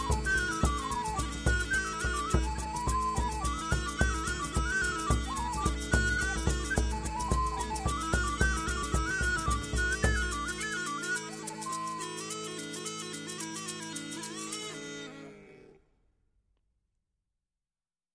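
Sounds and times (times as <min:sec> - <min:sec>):
Celtic bagpipes playing Scottish wedding music: 0:00.0 - 0:15.2.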